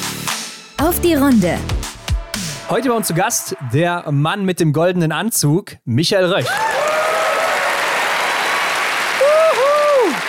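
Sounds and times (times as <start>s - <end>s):
speech: 0.9s - 1.7s, 2.7s - 6.7s
crowd applauding: 6.4s - 10.2s.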